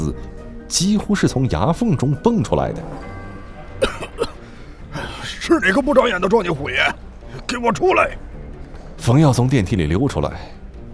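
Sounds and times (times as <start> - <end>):
speech: 0.1 - 3.1, 5.5 - 8.2, 9.0 - 10.6
cough: 3.8 - 4.4.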